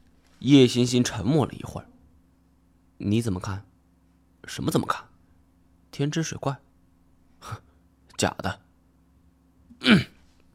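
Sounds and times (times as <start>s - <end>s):
speech: 0.4s - 1.9s, 3.0s - 3.7s, 4.5s - 5.1s, 5.9s - 6.7s, 7.4s - 7.6s, 8.2s - 8.6s, 9.8s - 10.1s
throat clearing: 9.7s - 10.3s.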